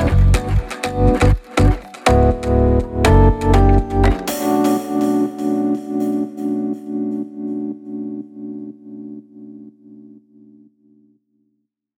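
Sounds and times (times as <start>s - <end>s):
fashion lounge house music: 0.0s - 9.4s.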